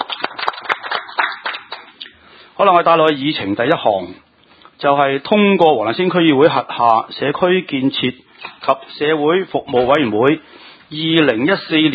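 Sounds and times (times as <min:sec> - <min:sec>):
small group of meeting attendees clapping in welcome at a district council committee session: 0:00.0 - 0:02.0
speech: 0:02.6 - 0:11.9.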